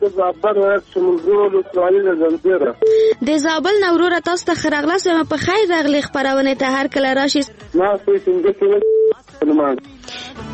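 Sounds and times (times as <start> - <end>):
speech: 0.1 - 10.5
telephone tone of a caller's line dropping on a radio call-in show: 8.8 - 9.2.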